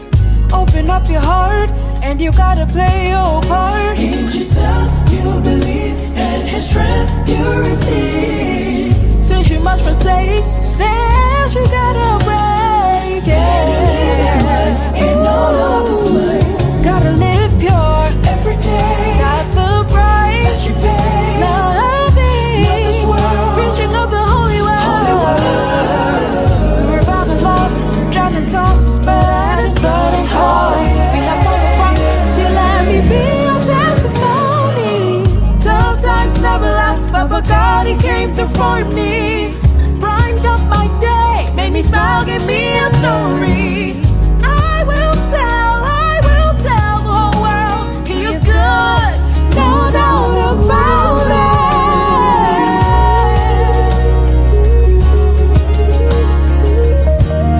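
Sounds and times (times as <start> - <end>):
acoustic music: 0.0 - 57.5.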